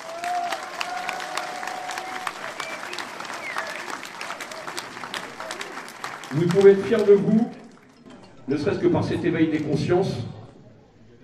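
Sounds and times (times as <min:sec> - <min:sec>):
crowd applauding: 0:00.0 - 0:08.1
speech: 0:06.3 - 0:07.6, 0:08.5 - 0:10.4.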